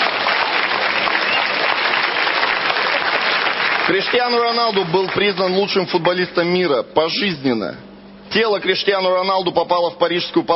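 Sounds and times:
audience applause: 0.0 - 5.6
speech: 3.9 - 10.5.

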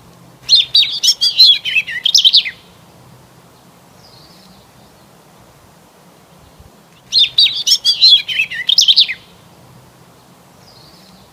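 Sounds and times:
bird song: 0.4 - 2.8, 3.5 - 5.2, 6.4 - 11.3.

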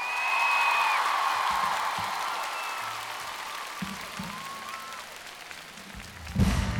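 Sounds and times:
audience applause: 0.0 - 6.7
shrill whistles and cheers: 0.0 - 6.7.

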